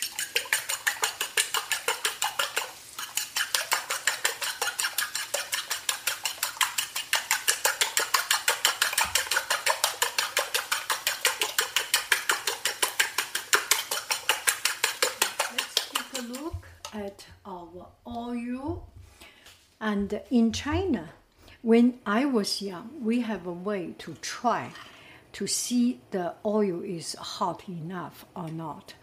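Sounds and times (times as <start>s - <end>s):
utensil beating a mixture with salt, pepper and cumin seed in a bowl: 0.0s - 17.4s
speech: 19.9s - 29.0s.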